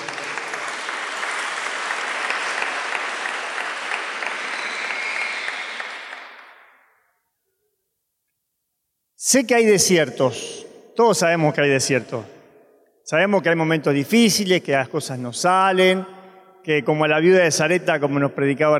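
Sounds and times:
audience applause: 0.0s - 6.8s
speech: 9.2s - 12.4s, 13.1s - 18.7s.

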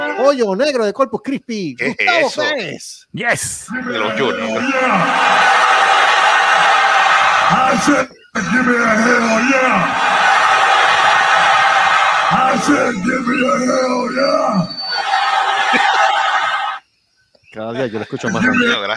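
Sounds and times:
speech: 0.2s - 5.8s, 7.5s - 10.2s, 12.3s - 14.7s, 17.6s - 18.9s
cheering, whoops and shouted voices: 3.7s - 16.8s, 18.3s - 18.9s
laughter: 3.7s - 16.8s, 17.6s - 18.9s
audience applause: 3.8s - 16.8s.

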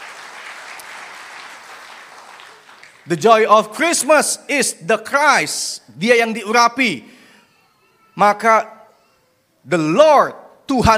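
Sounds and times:
church congregation clapping during a Christmas sermon: 0.0s - 4.2s
speech: 3.1s - 7.2s, 8.2s - 8.8s, 9.6s - 10.9s.

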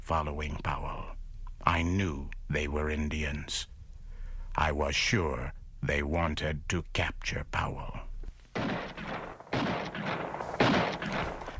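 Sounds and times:
speech: 0.1s - 3.7s, 4.6s - 8.1s
gunshots: 8.6s - 11.5s.

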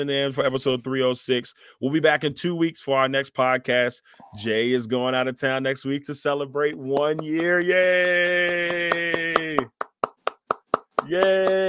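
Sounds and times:
speech: 0.0s - 9.2s, 11.1s - 11.6s
clapping: 6.6s - 11.6s.

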